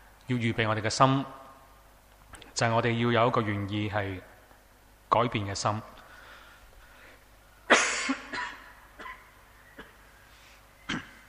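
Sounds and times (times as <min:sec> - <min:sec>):
speech: 0:00.3 - 0:01.4, 0:02.6 - 0:04.3, 0:05.1 - 0:06.0
person coughing from a dry throat after a lot of talking: 0:07.7 - 0:10.0, 0:10.9 - 0:11.2.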